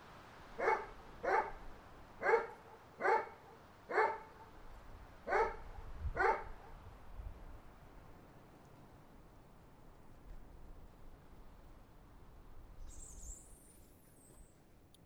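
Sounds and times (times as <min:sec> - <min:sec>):
dog barking: 0:00.6 - 0:04.5, 0:05.2 - 0:06.7.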